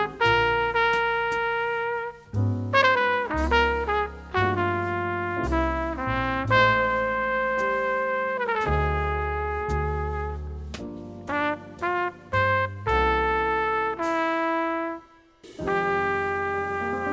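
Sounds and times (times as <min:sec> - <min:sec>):
jazz ballad with alto saxophone: 0:00.0 - 0:17.1.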